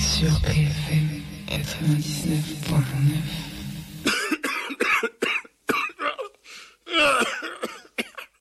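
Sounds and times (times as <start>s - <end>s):
speech: 0.2s - 4.1s
harsh coughing: 4.1s - 8.3s.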